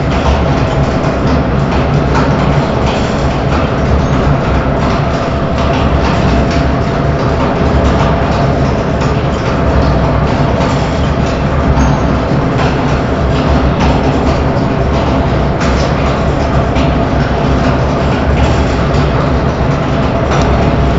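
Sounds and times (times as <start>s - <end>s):
industrial ambience: 0.0s - 20.9s.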